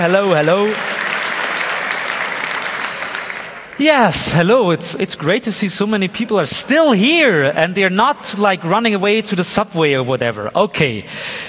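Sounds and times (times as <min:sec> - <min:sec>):
speech: 0:00.0 - 0:00.9, 0:03.8 - 0:11.4
event audience clapping to welcome a speaker from Vienna: 0:00.0 - 0:04.2.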